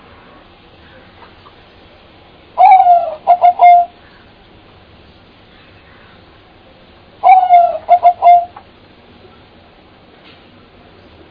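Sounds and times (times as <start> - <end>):
bird call: 2.6 - 4.3, 7.2 - 8.6.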